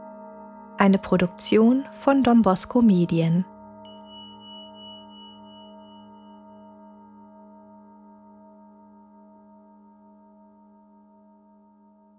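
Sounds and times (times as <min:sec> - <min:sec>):
speech: 0:00.8 - 0:03.5
golden sound bowl on a cushion struck and ringing: 0:03.9 - 0:07.0.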